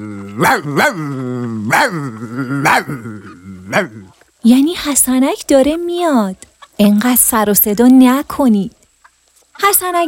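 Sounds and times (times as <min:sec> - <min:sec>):
speech: 0:00.0 - 0:08.8, 0:09.6 - 0:10.0
household dog barking outside a stable: 0:00.4 - 0:01.1, 0:01.7 - 0:02.0, 0:02.6 - 0:03.0, 0:03.7 - 0:04.1.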